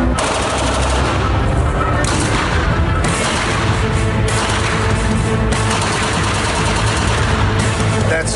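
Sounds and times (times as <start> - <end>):
fully automatic gunfire from a Glock 18C machine pistol: 0.1 - 7.7.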